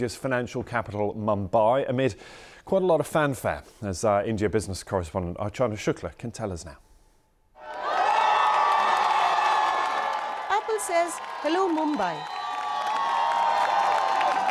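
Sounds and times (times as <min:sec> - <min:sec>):
speech: 0:00.0 - 0:06.8, 0:10.8 - 0:12.4
crowd of fans cheering loudly: 0:07.6 - 0:14.4.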